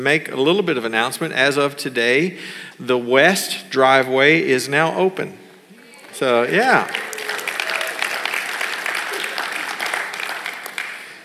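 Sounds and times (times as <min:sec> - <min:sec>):
speech: 0:00.0 - 0:05.4, 0:06.2 - 0:07.0
audience clapping: 0:06.1 - 0:11.2.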